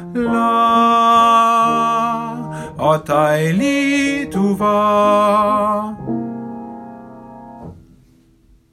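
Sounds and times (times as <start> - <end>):
tenor singing melody: 0.0 - 6.8.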